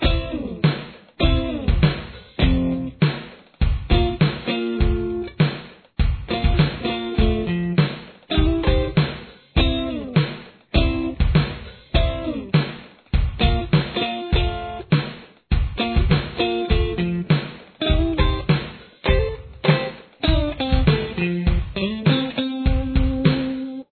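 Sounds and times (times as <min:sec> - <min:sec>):
guitar playing a verse: 0:00.0 - 0:03.0, 0:03.9 - 0:05.4, 0:06.3 - 0:10.2, 0:10.8 - 0:11.2, 0:12.0 - 0:12.5, 0:13.4 - 0:14.9, 0:15.8 - 0:23.9.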